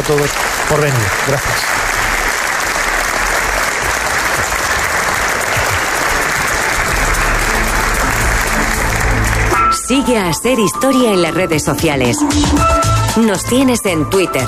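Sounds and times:
audience applause in Toledo Cathedral: 0.0s - 9.8s
speech: 0.1s - 1.8s, 9.9s - 14.4s.

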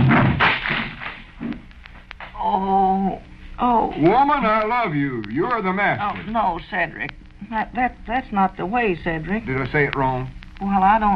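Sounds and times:
chair breaking under a thrown person: 0.0s - 1.3s
speech: 3.9s - 11.1s.

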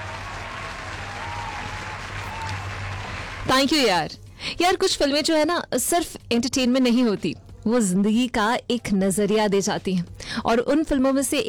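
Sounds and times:
applause: 0.0s - 3.7s
speech: 3.5s - 11.4s.

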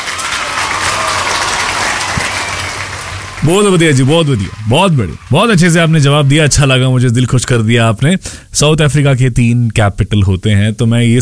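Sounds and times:
applause: 0.0s - 7.0s
speech: 3.4s - 11.2s.

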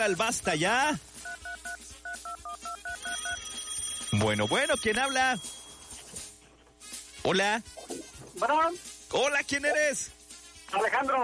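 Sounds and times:
speech: 0.0s - 1.1s, 4.1s - 5.6s, 7.2s - 7.7s, 8.4s - 11.2s
touch-tone keypad beeps on a radio call-in telephone line: 1.2s - 6.0s.

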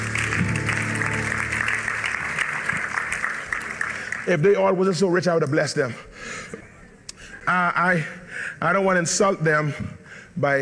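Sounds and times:
audience applause: 0.0s - 4.6s
speech: 4.3s - 6.6s, 7.5s - 10.6s.

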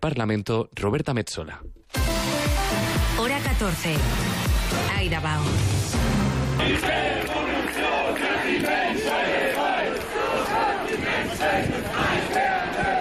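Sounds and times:
speech: 0.0s - 6.0s, 6.6s - 7.4s
antifascist demonstration crowd shouting and chanting in Magdeburg, Germany: 6.4s - 12.9s.

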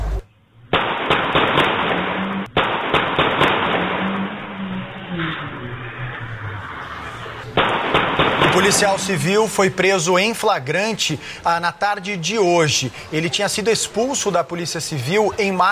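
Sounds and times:
impact: 0.0s - 9.8s
gunshots fired at a car: 0.7s - 10.4s
speech: 8.6s - 15.7s.

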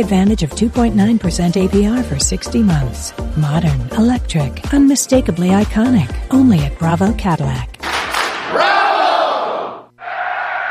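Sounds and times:
speech: 0.0s - 7.7s
football stadium crowd roaring and cheering during a game in Monterrey: 8.2s - 10.6s.

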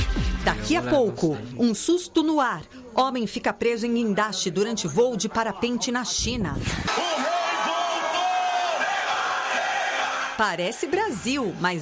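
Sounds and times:
speech: 0.2s - 7.3s, 10.4s - 11.8s
drawn-out shouts and whoops: 6.9s - 10.2s
football fans cheering and celebrating: 6.9s - 11.8s.

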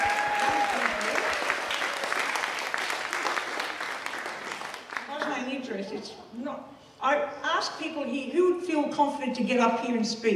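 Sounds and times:
loud audience applause: 0.0s - 5.6s
speech: 5.7s - 10.3s.

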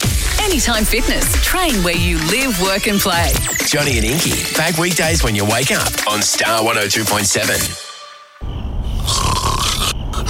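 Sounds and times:
speech: 0.5s - 7.9s
loud snoring: 9.0s - 10.2s.

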